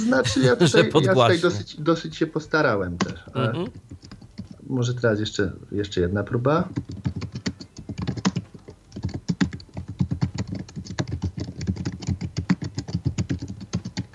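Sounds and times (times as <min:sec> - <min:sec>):
laughter: 0:00.0 - 0:01.6
speech: 0:00.0 - 0:04.1, 0:04.7 - 0:07.1
typing on a laptop computer keyboard: 0:03.0 - 0:04.6, 0:06.7 - 0:14.1.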